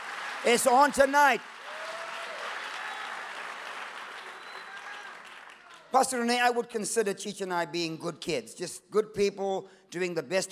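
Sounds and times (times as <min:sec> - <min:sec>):
audience clapping hands: 0:00.0 - 0:06.2
speech: 0:00.4 - 0:01.5, 0:05.9 - 0:10.5.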